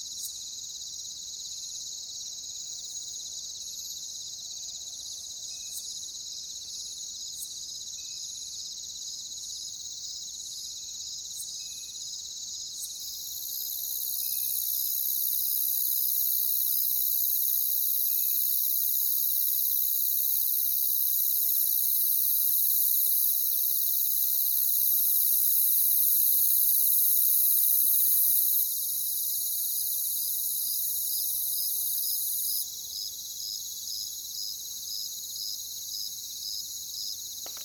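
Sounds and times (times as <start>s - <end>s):
crickets in a steady shrill chorus: 0.0s - 37.6s.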